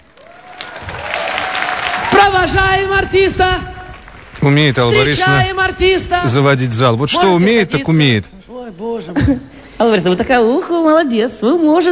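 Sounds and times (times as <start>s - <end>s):
concert audience clapping: 0.0s - 5.8s
speech: 2.4s - 3.7s, 4.4s - 11.9s.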